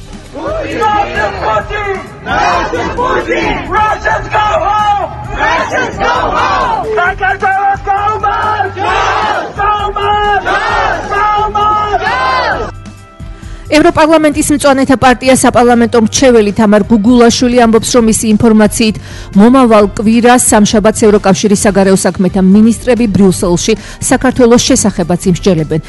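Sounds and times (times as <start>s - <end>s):
speech: 0.3s - 7.5s, 13.7s - 25.8s
Georgian students and foreign supporters chanting at a rally for Georgia joining the EU: 0.4s - 4.6s, 5.3s - 6.9s, 8.3s - 9.6s, 10.3s - 11.2s, 11.9s - 12.7s.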